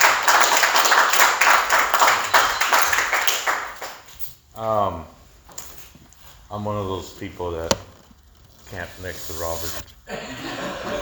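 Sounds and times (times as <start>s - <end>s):
audience applause: 0.0s - 3.9s
speech: 4.6s - 5.1s, 6.5s - 7.9s, 8.7s - 11.0s
laughter: 10.1s - 11.0s.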